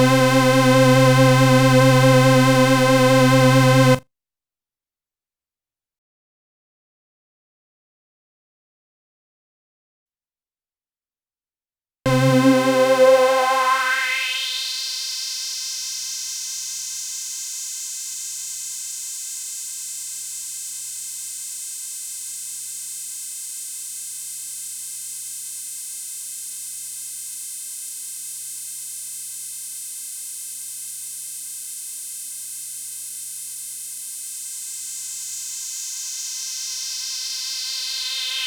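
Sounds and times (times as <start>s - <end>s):
Toraiz samples through a high-pass filter: 0.0s - 4.0s, 12.1s - 14.7s.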